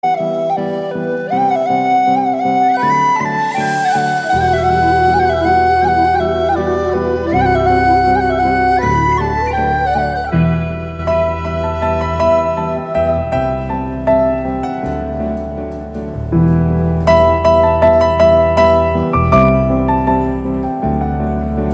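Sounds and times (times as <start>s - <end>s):
flute: 0.0s - 21.7s.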